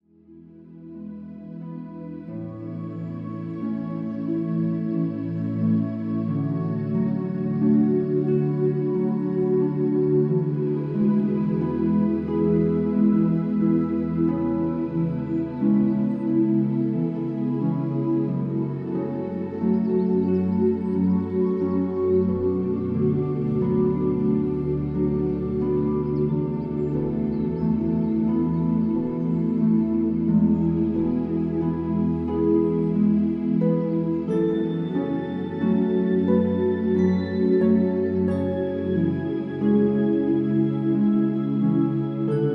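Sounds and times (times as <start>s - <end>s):
calm Celtic relaxation music: 0.0s - 42.5s.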